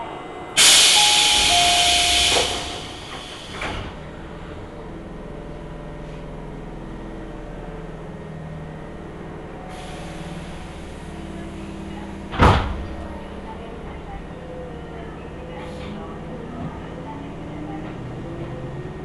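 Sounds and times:
local train on the Tobu Tojo Line rumbling: 0.0 - 19.0
loud bright hiss of air: 0.6 - 3.8.

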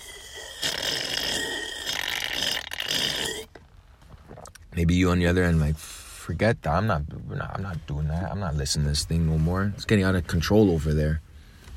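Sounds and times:
person imitating slurping hot coffee: 0.0 - 3.6
speech: 4.8 - 11.3.

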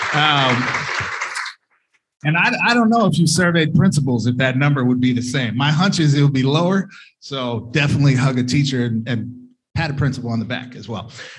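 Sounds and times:
clapping: 0.0 - 1.6
speech: 0.1 - 0.9, 2.2 - 11.3.

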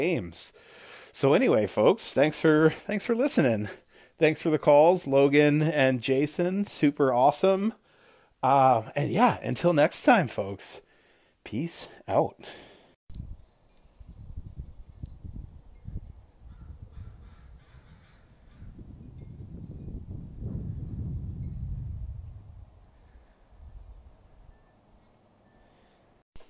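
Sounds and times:
speech: 0.0 - 7.8, 8.4 - 10.8, 11.4 - 12.7
wind chimes in wind: 13.1 - 17.0, 19.0 - 20.2, 21.0 - 26.0
crows cawing: 16.5 - 18.7.

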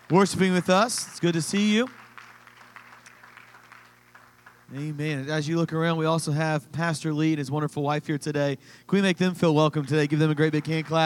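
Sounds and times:
audience clapping: 0.0 - 5.5, 9.7 - 11.0
speech: 0.1 - 2.0, 4.7 - 11.0.

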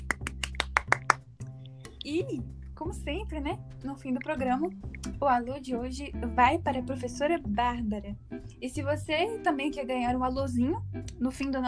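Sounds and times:
applause: 0.0 - 1.2
speech: 2.0 - 11.6.

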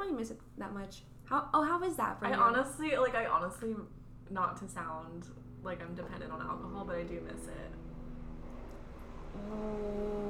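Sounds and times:
speech: 0.0 - 7.8, 9.4 - 10.2
helicopter: 4.3 - 9.9.

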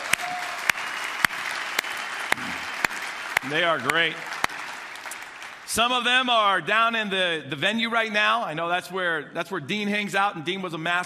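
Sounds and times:
round of applause: 0.0 - 6.3
speech: 3.4 - 4.3, 5.7 - 11.0.

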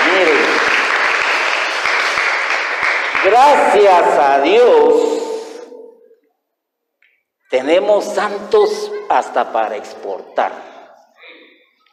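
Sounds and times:
crowd applauding: 0.0 - 3.9
speech: 3.4 - 5.2, 7.5 - 10.7.

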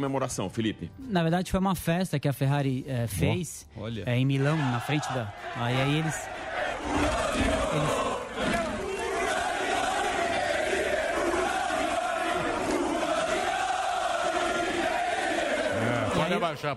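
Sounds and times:
speech: 0.0 - 8.0, 16.4 - 16.7
large crowd chanting and shouting at a Ferrari celebration: 4.4 - 16.6.

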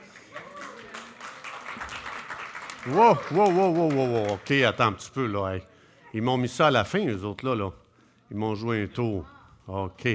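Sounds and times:
church audience applause: 0.0 - 4.9
speech: 2.8 - 10.1.

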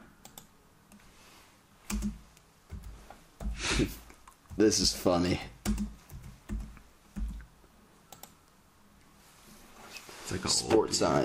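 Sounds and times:
typing on a computer keyboard: 1.9 - 3.6, 5.6 - 7.5, 8.1 - 8.4
speech: 3.8 - 4.0, 4.6 - 5.9, 10.4 - 11.2.

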